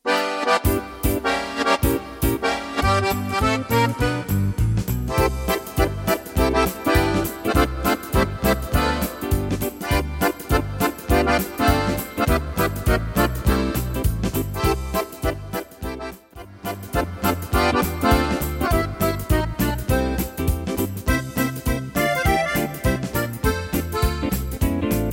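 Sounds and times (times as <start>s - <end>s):
accordion swing music: 0.0s - 25.1s.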